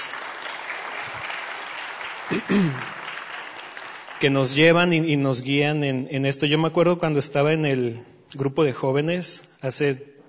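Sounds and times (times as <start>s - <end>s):
audience applause for a church worship team: 0.0s - 5.0s
speech: 2.3s - 3.0s, 4.2s - 10.2s.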